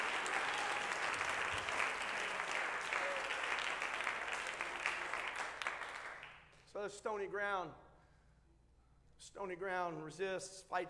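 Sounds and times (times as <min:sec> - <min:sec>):
audience clapping: 0:00.0 - 0:06.5
speech: 0:06.8 - 0:07.8, 0:09.2 - 0:10.8.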